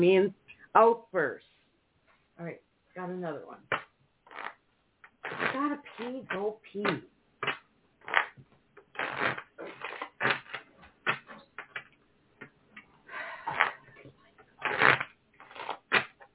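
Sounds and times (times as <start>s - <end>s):
speech: 0.0s - 1.5s, 2.4s - 3.9s, 5.3s - 7.1s, 9.0s - 9.7s
tarot cards shuffled during a reading: 3.7s - 11.9s, 14.6s - 16.3s.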